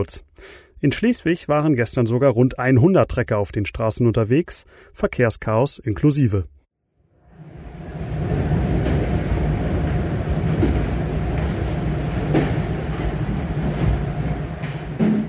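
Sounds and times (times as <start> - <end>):
speech: 0.0 - 6.6
parcel sorting centre machinery rumble and whir: 7.2 - 15.2
scattered clacks and knocks from parcel sorting machinery: 8.0 - 15.2.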